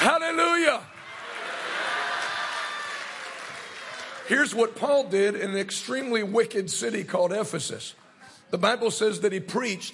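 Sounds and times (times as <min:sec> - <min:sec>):
congregation clapping in praise during a church sermon: 0:00.0 - 0:04.6
speech: 0:04.3 - 0:09.9.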